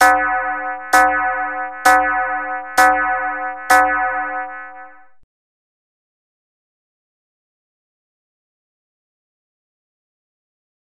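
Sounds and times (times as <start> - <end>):
bell ringing: 0.0 - 5.1.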